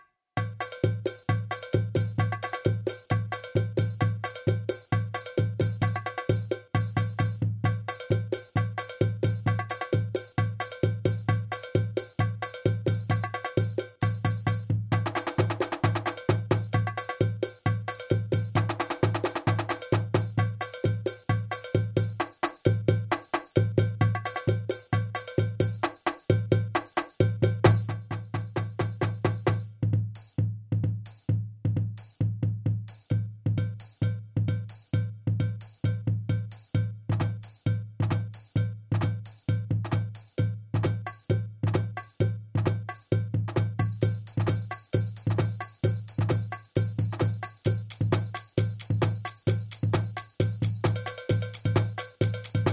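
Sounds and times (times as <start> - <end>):
swing drums: 0.4 - 52.7.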